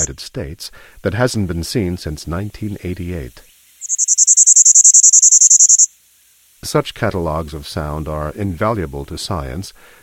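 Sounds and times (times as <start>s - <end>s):
Bachman's warbler song: 0.0s - 0.2s, 2.3s - 5.9s
speech: 0.0s - 4.6s, 6.7s - 10.0s.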